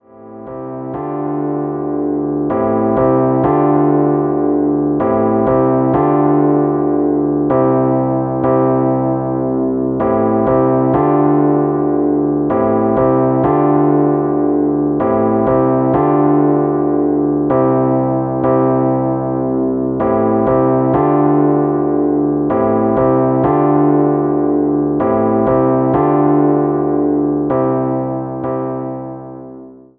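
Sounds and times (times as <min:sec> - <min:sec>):
Rhodes electric piano hip hop chords: 0:00.0 - 0:29.9.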